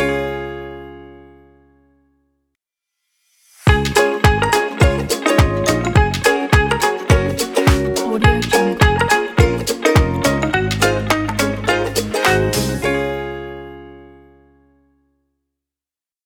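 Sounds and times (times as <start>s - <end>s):
upbeat happy ukulele logo jingle: 0.0s - 1.4s, 3.7s - 14.4s.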